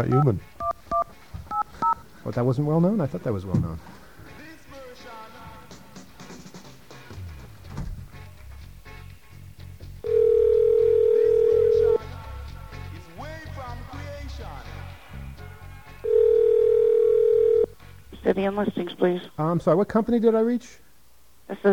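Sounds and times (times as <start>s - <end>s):
speech: 0.0s - 0.5s, 2.2s - 4.0s, 18.4s - 20.8s, 21.5s - 21.7s
telephone dialing: 10.1s - 12.0s, 16.1s - 17.7s.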